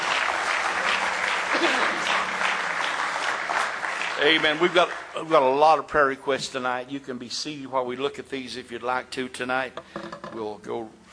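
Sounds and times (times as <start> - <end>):
audience hand clapping applause: 0.0 - 5.8
speech: 1.6 - 2.1, 4.2 - 11.1.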